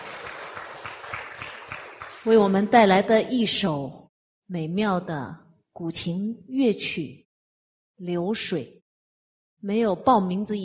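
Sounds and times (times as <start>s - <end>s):
audience applause: 0.0s - 2.3s
speech: 2.2s - 7.2s, 8.0s - 8.8s, 9.6s - 10.6s.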